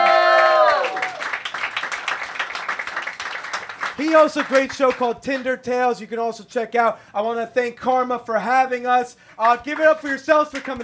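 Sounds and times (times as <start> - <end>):
crowd applauding: 0.0 - 5.0, 9.4 - 10.8
speech: 4.0 - 10.8.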